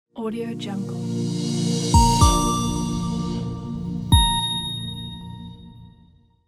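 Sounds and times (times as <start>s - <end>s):
simple digital logo jingle: 0.9s - 6.0s.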